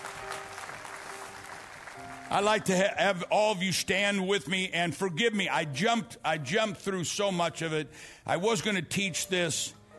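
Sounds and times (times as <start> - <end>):
audience clapping: 0.0 - 3.0
speech: 2.3 - 9.8.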